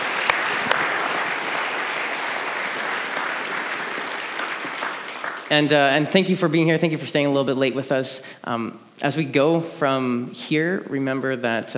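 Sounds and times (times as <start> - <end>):
audience applause: 0.0 - 5.7
speech: 5.5 - 11.7.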